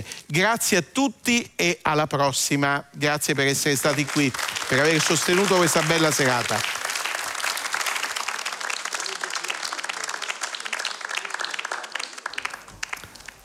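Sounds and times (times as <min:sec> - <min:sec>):
speech: 0:00.0 - 0:06.8
audience applause in concert hall: 0:03.8 - 0:13.4.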